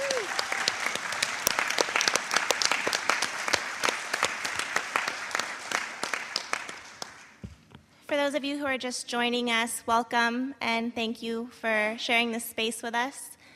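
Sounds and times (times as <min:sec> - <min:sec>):
audience applause: 0:00.0 - 0:07.4
speech: 0:08.3 - 0:13.3.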